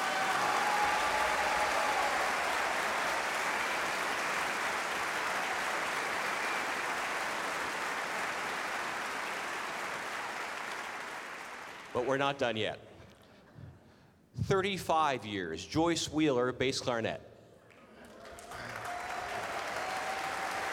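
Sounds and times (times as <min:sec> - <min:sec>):
audience applause: 0:00.0 - 0:12.0, 0:18.0 - 0:20.7
speech: 0:12.0 - 0:12.9, 0:14.5 - 0:17.3.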